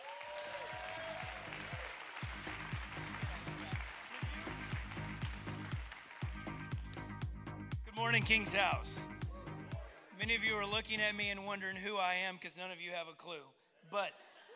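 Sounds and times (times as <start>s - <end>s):
audience clapping: 0.0s - 7.1s
low rhythmic thumping: 2.2s - 11.6s
speech: 8.0s - 9.1s, 10.2s - 14.2s.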